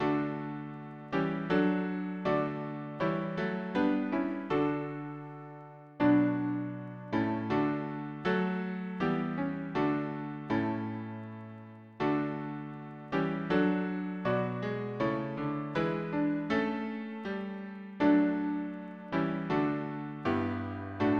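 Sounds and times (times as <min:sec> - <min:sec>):
piano harmony: 0:00.0 - 0:21.1.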